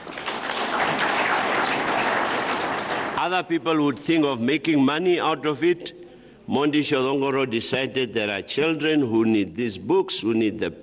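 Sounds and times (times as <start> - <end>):
round of applause: 0.0 - 3.4
speech: 3.2 - 10.8.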